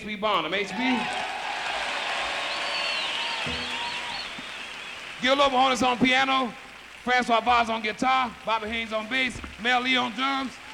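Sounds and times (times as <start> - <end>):
speech: 0.0 - 1.2, 5.2 - 10.6
crowd applauding: 0.7 - 10.7
whistles: 1.8 - 5.2.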